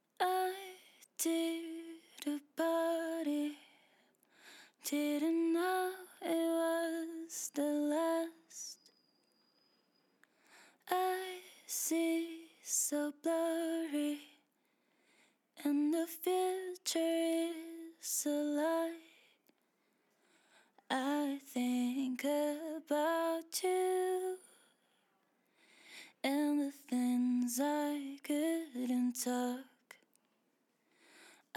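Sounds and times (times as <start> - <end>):
pop R&B a cappella singing in E minor: 0.0 - 3.8, 4.8 - 8.9, 10.8 - 14.4, 15.6 - 19.2, 20.9 - 24.6, 26.2 - 29.9.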